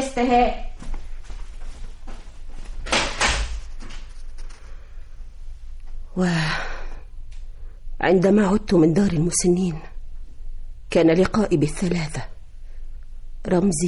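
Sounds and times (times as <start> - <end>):
speech: 0.2 - 0.7, 6.2 - 6.7, 8.0 - 9.9, 10.9 - 12.3, 13.4 - 13.8
door being closed: 2.8 - 3.6.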